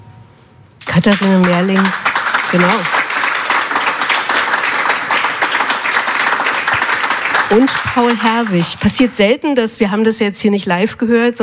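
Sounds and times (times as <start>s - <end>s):
audience applause after a played recording: 0.8s - 9.3s
speech: 1.0s - 3.0s, 7.5s - 11.4s.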